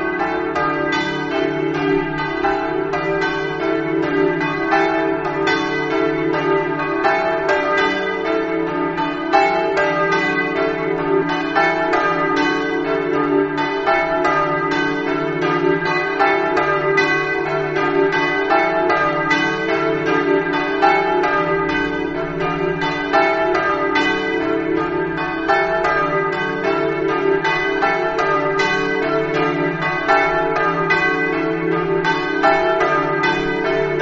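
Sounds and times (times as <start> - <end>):
bells: 0.0 - 34.0.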